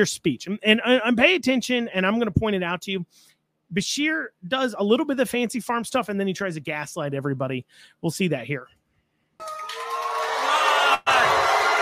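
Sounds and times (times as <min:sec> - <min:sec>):
speech: 0:00.0 - 0:08.8
crowd booing: 0:09.4 - 0:11.8.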